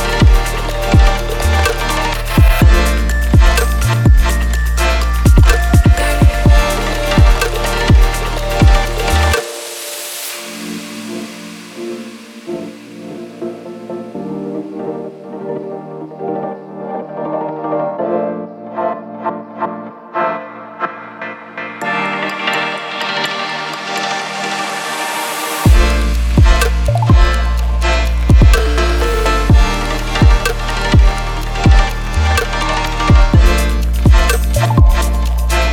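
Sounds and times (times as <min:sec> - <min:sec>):
creative electronic music: 0:00.0 - 0:35.7.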